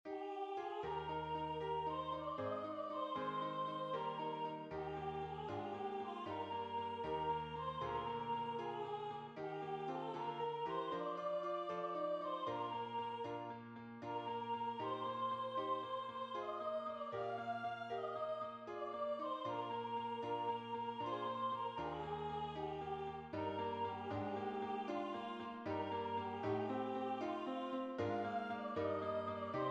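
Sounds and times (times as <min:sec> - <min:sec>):
tenor singing: 0:00.1 - 0:29.6.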